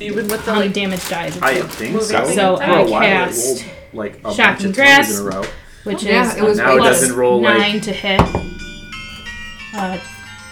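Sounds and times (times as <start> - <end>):
speech: 0.0 - 8.6, 9.8 - 10.1
doorbell ringing: 6.2 - 10.4.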